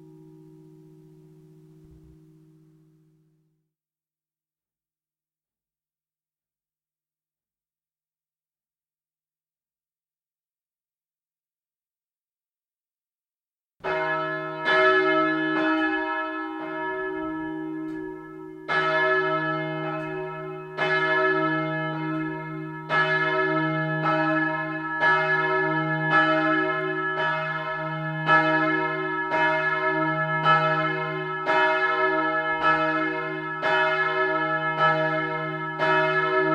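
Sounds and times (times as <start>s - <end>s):
church bell ringing at six o'clock in Neenstetten: 0.0s - 3.4s, 13.8s - 36.5s.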